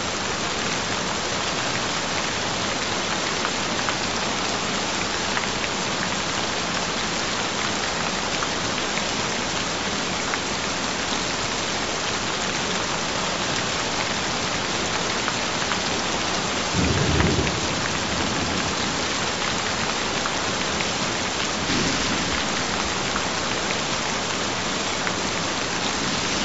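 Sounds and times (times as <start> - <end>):
gentle rain: 0.0 - 26.4.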